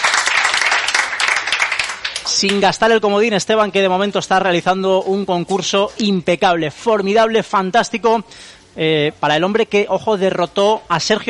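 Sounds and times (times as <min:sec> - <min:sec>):
audience applause: 0:00.0 - 0:02.6
speech: 0:02.3 - 0:11.2.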